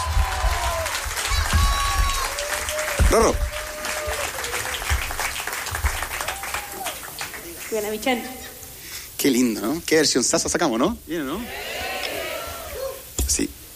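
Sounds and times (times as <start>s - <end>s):
audience applause: 0.0s - 8.2s
speech: 3.1s - 3.5s, 7.7s - 8.5s, 9.2s - 11.7s, 13.4s - 13.6s.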